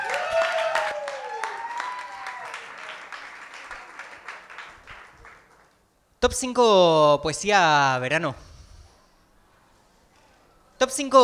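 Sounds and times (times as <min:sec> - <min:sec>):
audience applause: 0:00.0 - 0:05.8
speech: 0:06.2 - 0:08.5, 0:10.9 - 0:11.2.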